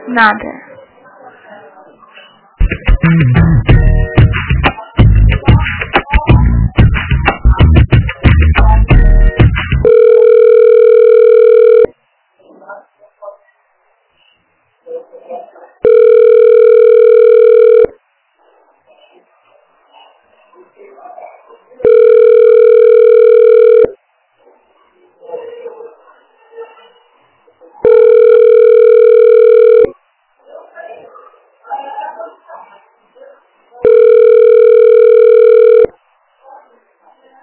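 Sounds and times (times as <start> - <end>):
dense loud sound: 2.6 - 9.9
telephone ringback tones while a call is transferred: 9.8 - 11.9, 15.8 - 17.9, 21.8 - 24.0, 27.8 - 29.9, 33.8 - 35.9.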